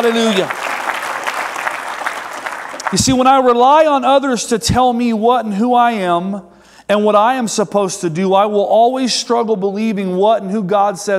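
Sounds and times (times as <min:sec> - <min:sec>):
speech: 0:00.0 - 0:00.6, 0:02.9 - 0:11.1
audience applause: 0:00.0 - 0:03.3.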